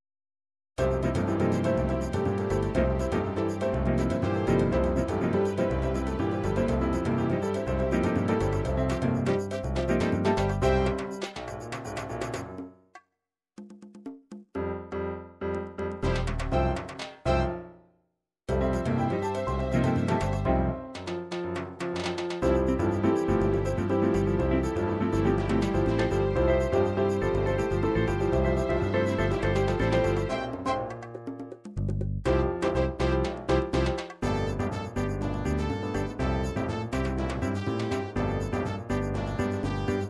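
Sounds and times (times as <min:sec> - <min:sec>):
African conga drumming: 0:00.8 - 0:12.8, 0:13.6 - 0:14.7, 0:15.6 - 0:17.6, 0:18.5 - 0:40.0.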